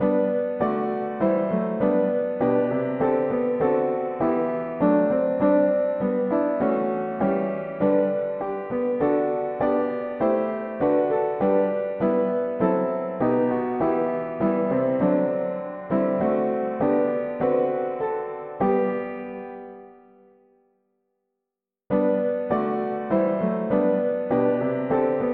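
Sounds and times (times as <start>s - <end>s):
mono piano playing hymns: 0.0s - 20.3s, 21.9s - 25.3s.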